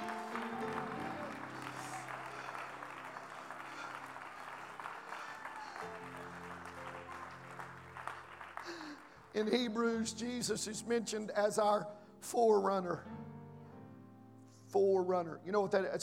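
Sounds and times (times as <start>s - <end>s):
audience clapping: 0.0s - 9.6s
speech: 9.4s - 13.1s, 14.8s - 16.0s.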